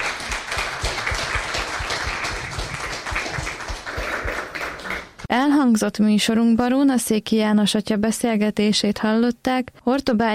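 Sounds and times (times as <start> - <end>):
audience applause: 0.0 - 5.3
speech: 5.3 - 10.3.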